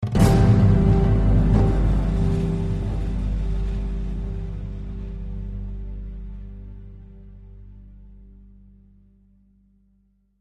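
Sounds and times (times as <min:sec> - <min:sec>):
shock stinger: 0:00.0 - 0:07.6.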